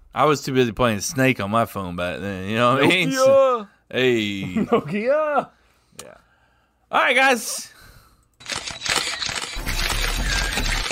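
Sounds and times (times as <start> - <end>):
speech: 0.2 - 6.2, 6.9 - 7.8
camera shutter clicks: 8.4 - 10.8.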